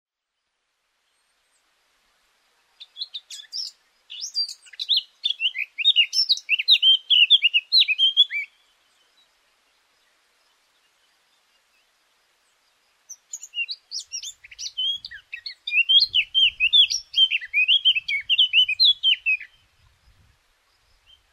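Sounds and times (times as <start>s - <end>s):
Eurasian blackcap singing: 2.9s - 8.6s, 13.1s - 19.6s.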